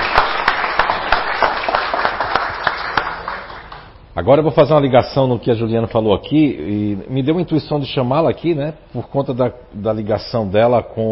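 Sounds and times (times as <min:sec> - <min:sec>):
round of applause from a group: 0:00.0 - 0:04.0
speech: 0:04.2 - 0:11.1.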